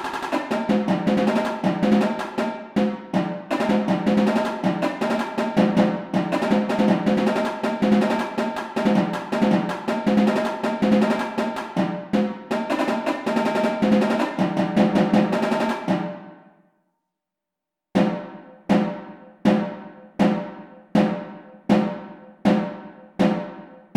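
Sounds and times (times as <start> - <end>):
drumline: 0.0 - 16.3
tenor drums: 0.0 - 16.4, 18.0 - 23.9.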